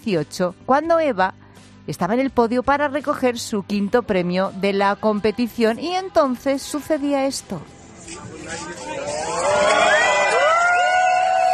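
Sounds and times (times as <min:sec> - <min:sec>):
speech: 0:00.0 - 0:10.0
crowd ovation and cheering: 0:08.9 - 0:11.5
high rising whoops and shouts: 0:09.1 - 0:11.5.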